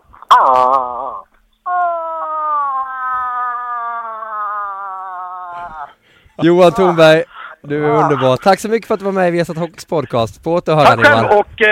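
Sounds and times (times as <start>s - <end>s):
person imitating moose call: 0.3s - 6.0s
speech: 6.4s - 11.7s.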